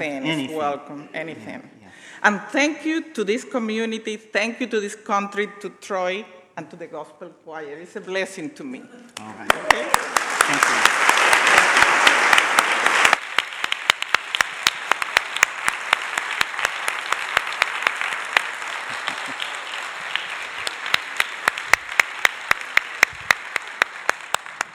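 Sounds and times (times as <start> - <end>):
speech: 0.0 - 10.8
crowd applauding: 9.2 - 24.7.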